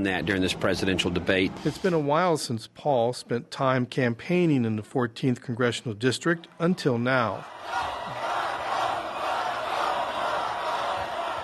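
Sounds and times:
speech: 0.0s - 8.0s
crowd cheering at a political rally in Lake Jackson: 6.2s - 11.4s.

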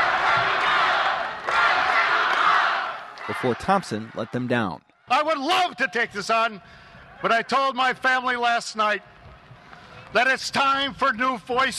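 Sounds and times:
rally crowd chanting: 0.0s - 4.3s
speech: 3.3s - 9.1s, 10.1s - 11.7s.

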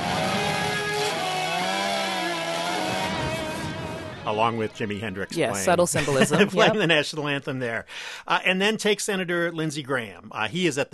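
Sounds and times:
chainsaw cutting through a copy of the tax code: 0.0s - 4.2s
speech: 4.3s - 10.9s
laughter: 5.4s - 7.8s.

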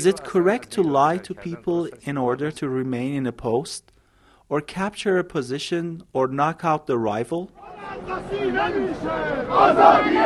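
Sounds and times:
speech: 0.0s - 3.9s, 4.5s - 10.2s
crowd of supporters chanting: 7.6s - 10.2s.

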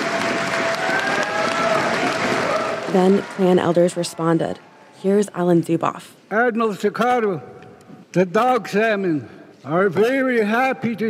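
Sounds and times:
crowd applause filling a gym: 0.0s - 4.4s
speech: 2.9s - 11.0s.

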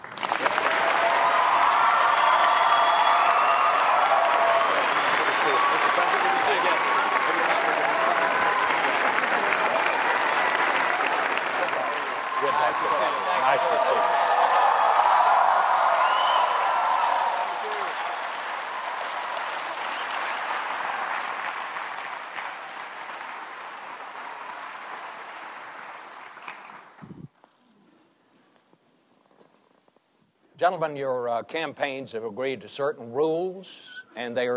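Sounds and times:
audience applause at a presidential debate welcoming Barack Obama and Mitt Romney: 0.0s - 27.0s
speech: 30.7s - 34.5s.

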